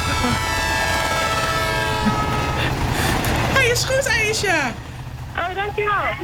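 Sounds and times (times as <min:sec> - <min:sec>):
electronic train sound effect from a bingo machine: 0:00.0 - 0:04.8
speech: 0:03.8 - 0:06.2.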